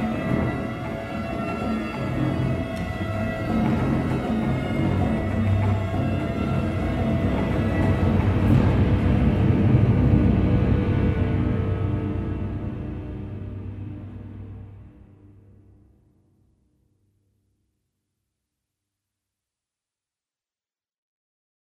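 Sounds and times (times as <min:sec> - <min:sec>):
scary noise: 0:00.0 - 0:15.6.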